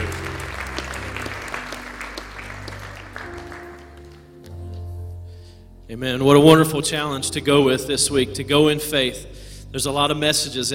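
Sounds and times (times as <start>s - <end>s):
audience applauding in praise: 0.0s - 4.6s
speech: 5.9s - 10.7s.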